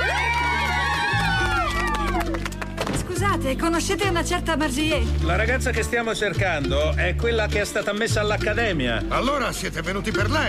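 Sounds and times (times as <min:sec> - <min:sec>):
audience applause and cheering: 0:00.0 - 0:03.1
speech: 0:03.4 - 0:10.4.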